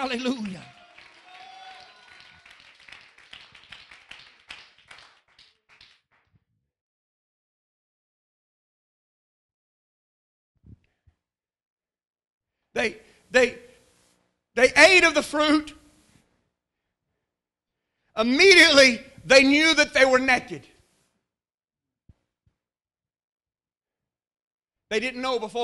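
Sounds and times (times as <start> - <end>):
speech: 0.0 - 0.8, 12.8 - 13.6, 14.6 - 15.8, 18.2 - 20.7, 24.9 - 25.6
audience clapping hands: 0.0 - 6.4.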